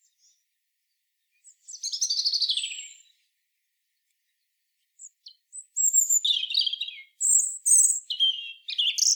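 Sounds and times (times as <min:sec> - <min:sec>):
European robin singing: 0:01.3 - 0:03.3, 0:04.0 - 0:09.1.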